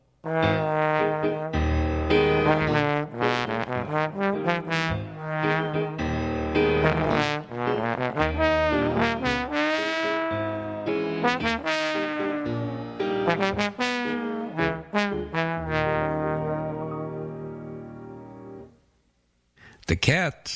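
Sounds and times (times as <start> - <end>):
trombone playing a lively bouncy melody: 0.2 - 18.7
speech: 0.3 - 1.5.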